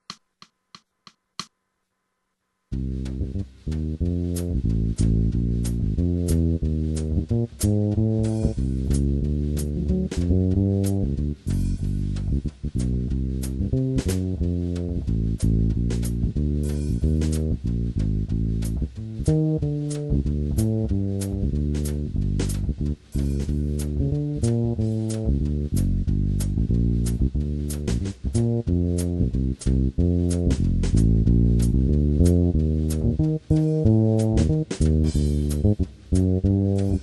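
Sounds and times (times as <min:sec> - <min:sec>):
jazz backing track: 0:02.7 - 0:37.0.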